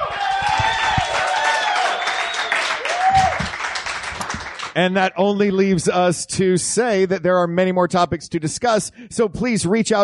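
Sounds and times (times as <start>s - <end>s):
audience applause: 0.0s - 4.8s
speech: 4.8s - 10.0s.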